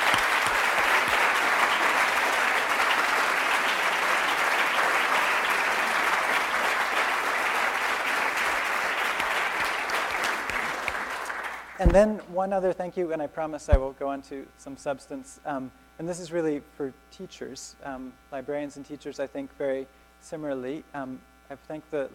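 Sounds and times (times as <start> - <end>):
audience applause: 0.0 - 11.8
speech: 11.8 - 22.1.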